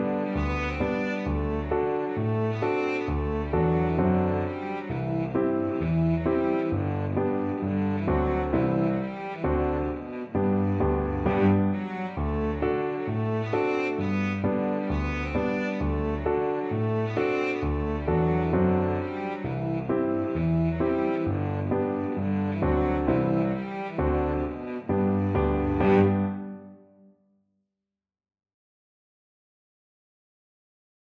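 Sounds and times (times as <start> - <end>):
cello playing a hornpipe: 0.0 - 26.6.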